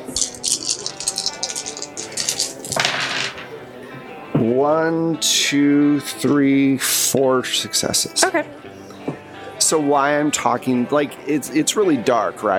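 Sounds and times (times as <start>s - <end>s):
handful of dice being rolled: 0.0s - 3.6s
speech: 4.4s - 8.8s, 9.7s - 12.5s.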